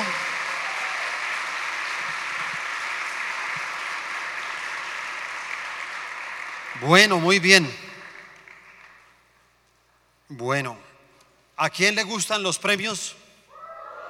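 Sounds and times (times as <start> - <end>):
crowd applause: 0.0 - 9.2
speech: 6.8 - 7.8, 10.4 - 10.8, 11.6 - 13.2.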